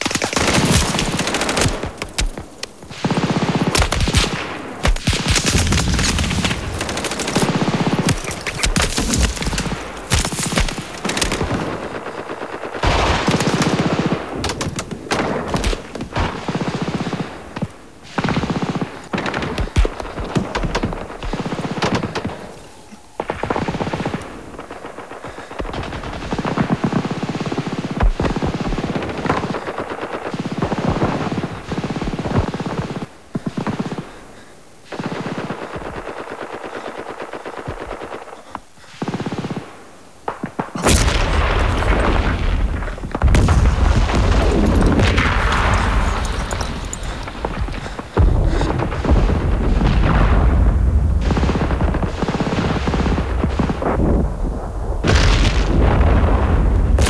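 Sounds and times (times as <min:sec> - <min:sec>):
ambience: 0:00.0 - 0:57.0.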